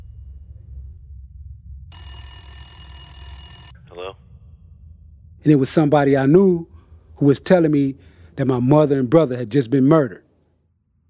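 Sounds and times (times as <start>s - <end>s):
telephone ringing: 1.9s - 3.8s
speech: 4.0s - 4.3s, 5.4s - 10.2s.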